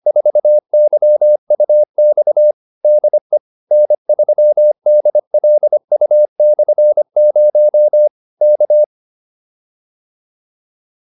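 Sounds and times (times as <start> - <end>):
morse code QSO practice: 0.1 - 8.9.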